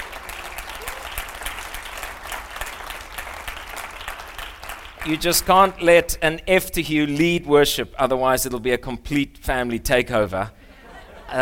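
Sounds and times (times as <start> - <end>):
audience applause for the worship team and drummer at an evening church service: 0.0 - 5.6
speech: 5.0 - 10.6
laughter: 10.8 - 11.4.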